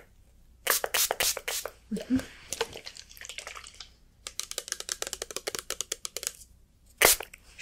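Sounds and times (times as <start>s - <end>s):
spray bottle misting hair: 0.7s - 1.8s, 7.0s - 7.3s
speech: 1.9s - 2.3s.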